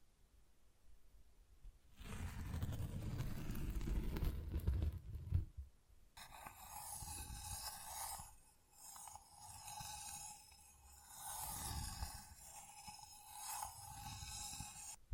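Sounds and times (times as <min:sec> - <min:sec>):
scratching and rubbing: 0:01.9 - 0:05.6, 0:06.2 - 0:15.0.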